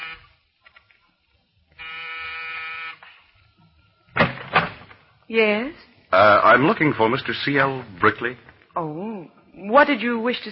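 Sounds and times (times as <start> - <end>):
apartment door buzzer: 0.0 - 0.4, 1.8 - 3.1
speech: 5.3 - 10.4.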